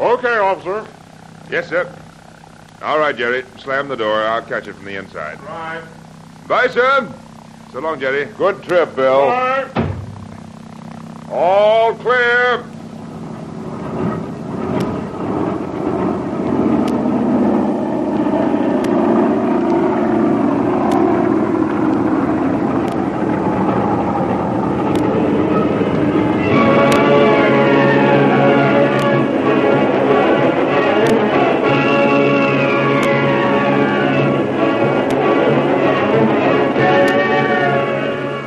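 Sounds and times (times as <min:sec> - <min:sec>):
speech: 0:00.1 - 0:02.0, 0:02.8 - 0:09.8, 0:11.3 - 0:12.8
jet engines of a big passenger airliner taking off from a long concrete runway: 0:08.5 - 0:38.4.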